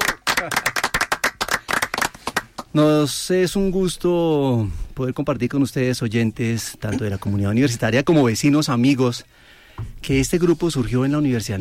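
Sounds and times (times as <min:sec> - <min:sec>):
audience applause: 0:00.0 - 0:02.6
speech: 0:00.4 - 0:00.7, 0:02.8 - 0:11.5.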